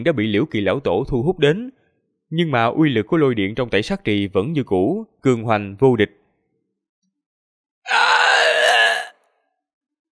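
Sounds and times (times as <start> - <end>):
speech: 0.0 - 6.2, 7.9 - 8.2
agonized scream: 7.8 - 9.3.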